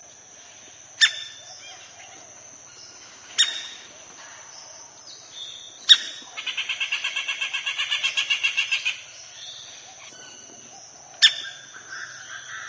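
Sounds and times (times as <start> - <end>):
stripe-breasted woodpecker rattling call: 3.3 - 3.8, 5.8 - 9.1, 11.2 - 12.6.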